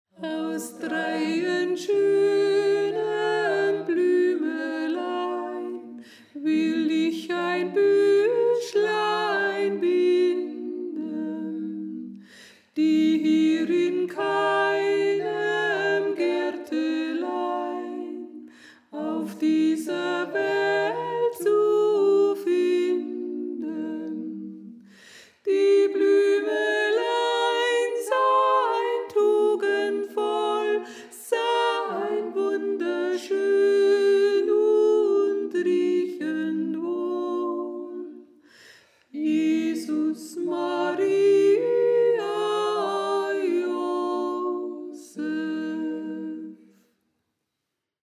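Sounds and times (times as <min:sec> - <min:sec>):
soprano voice: 0:00.1 - 0:38.4, 0:39.1 - 0:46.7.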